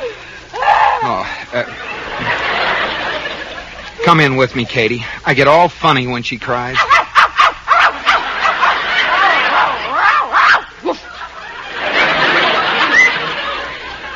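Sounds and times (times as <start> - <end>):
people talking and chuckling: 1.0 - 5.3, 6.6 - 14.1
speech: 4.1 - 7.0
hidden dog barking: 6.8 - 10.6.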